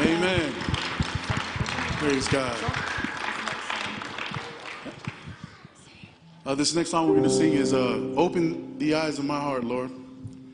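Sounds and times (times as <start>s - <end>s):
audience applause: 0.0s - 5.3s
speech: 2.0s - 2.8s, 6.5s - 10.0s.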